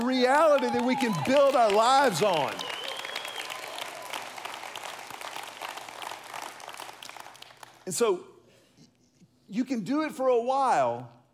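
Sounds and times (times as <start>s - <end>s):
audience applause: 0.0s - 7.8s
speech: 0.1s - 2.7s, 7.9s - 8.3s, 9.5s - 11.2s.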